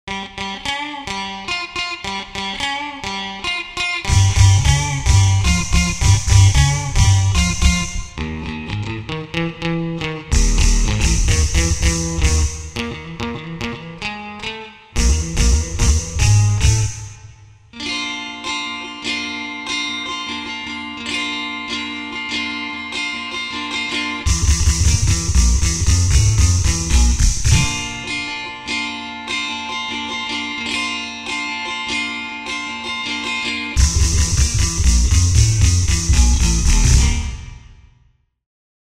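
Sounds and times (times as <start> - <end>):
guitar: 0.0 - 38.1.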